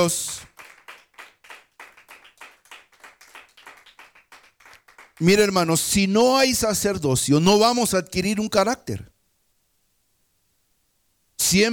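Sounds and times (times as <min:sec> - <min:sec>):
speech: 0:00.0 - 0:00.5, 0:05.2 - 0:09.1, 0:11.5 - 0:11.7
audience clapping hands: 0:00.0 - 0:05.6.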